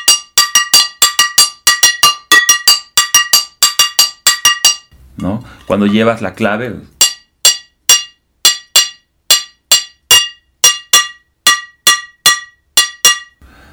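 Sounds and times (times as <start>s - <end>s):
frying pan struck like a cowbell: 0.0s - 4.9s, 7.0s - 13.4s
speech: 5.2s - 7.0s.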